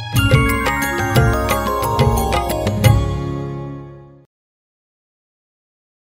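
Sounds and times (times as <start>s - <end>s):
karaoke music: 0.1s - 3.3s.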